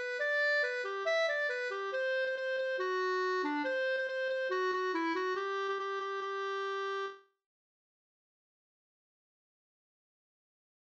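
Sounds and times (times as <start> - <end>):
polka in G major: 0.0 - 7.2.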